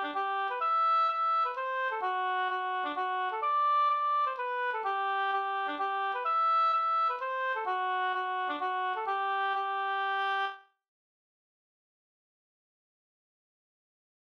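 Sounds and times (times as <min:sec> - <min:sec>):
hambo polska folk dance tune: 0:00.0 - 0:10.5.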